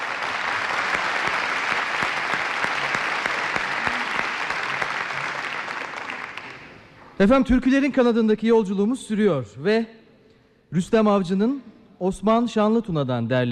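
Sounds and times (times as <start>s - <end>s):
audience applauding a musician after a Turkish folk song: 0.0s - 7.2s
speech: 7.2s - 10.0s, 10.7s - 13.4s.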